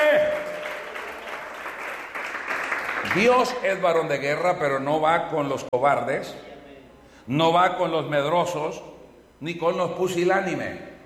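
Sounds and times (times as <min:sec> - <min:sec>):
church congregation applauding during a worship service: 0:00.0 - 0:03.7
speech: 0:03.0 - 0:06.5, 0:07.2 - 0:10.9.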